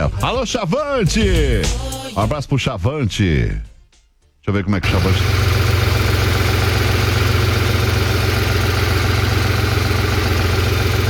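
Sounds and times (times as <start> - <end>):
speech: 0.0 - 3.7, 4.4 - 5.4
truck engine drone inside the cab: 4.8 - 11.0.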